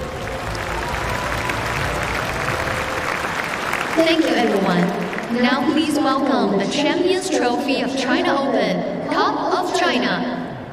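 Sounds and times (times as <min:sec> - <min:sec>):
applause for volunteers ball kids and staff at the China Open tennis ceremony: 0:00.0 - 0:06.5
speech: 0:04.0 - 0:10.4.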